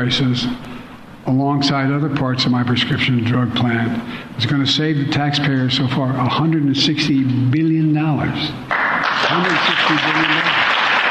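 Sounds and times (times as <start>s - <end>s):
speech: 0.0s - 10.6s
room audience clapping: 8.7s - 11.0s.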